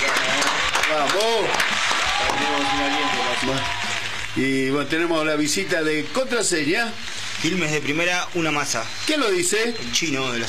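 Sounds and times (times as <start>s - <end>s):
crowd applause: 0.0s - 5.4s
speech: 0.9s - 3.8s, 4.4s - 10.4s.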